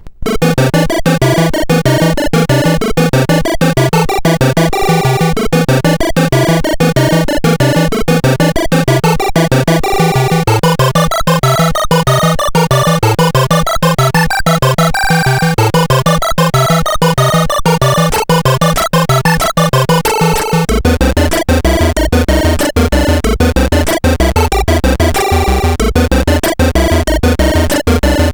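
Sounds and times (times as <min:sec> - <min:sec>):
chiptune game music on a SID 8580R5 chip: 0:00.2 - 0:28.3.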